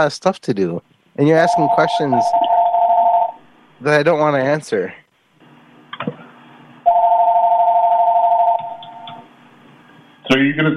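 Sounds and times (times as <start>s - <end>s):
speech: 0.0s - 2.4s, 3.8s - 5.0s, 10.3s - 10.7s
telephone ringing: 1.4s - 3.4s, 6.9s - 9.1s.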